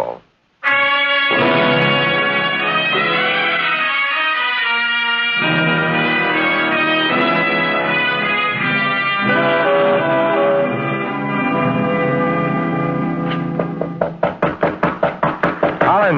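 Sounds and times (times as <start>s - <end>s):
sustained music: 0.0s - 16.1s
rapid loud knocking on a door: 13.5s - 16.1s.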